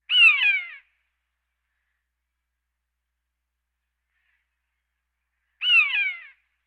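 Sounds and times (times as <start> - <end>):
birds: 0.0 - 1.0, 4.0 - 6.6.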